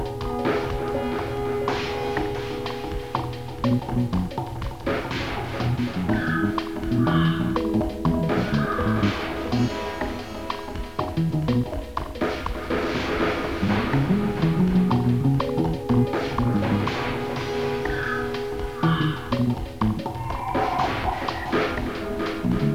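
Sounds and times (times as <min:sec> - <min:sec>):
sea ambience loop: 0:00.1 - 0:22.6.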